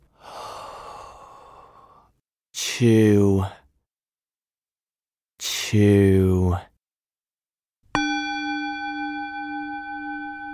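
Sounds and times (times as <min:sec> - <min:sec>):
slow exhale: 0:00.1 - 0:02.1
speech: 0:02.8 - 0:03.6, 0:05.7 - 0:06.7.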